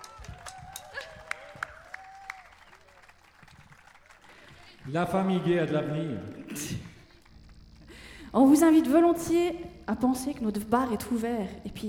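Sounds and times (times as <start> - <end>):
scattered audience applause: 0.0 - 8.1
speech: 4.8 - 6.7, 8.4 - 11.8.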